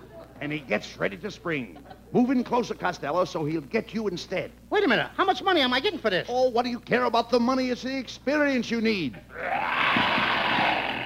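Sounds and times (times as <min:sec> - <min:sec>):
speech: 0:00.4 - 0:09.5
lion roaring: 0:09.3 - 0:11.0.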